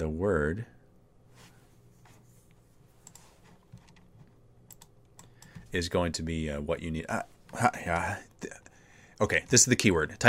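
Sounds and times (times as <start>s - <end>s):
speech: 0.0s - 0.8s, 5.7s - 8.6s, 9.2s - 10.2s
faint computer keyboard typing: 2.0s - 5.8s.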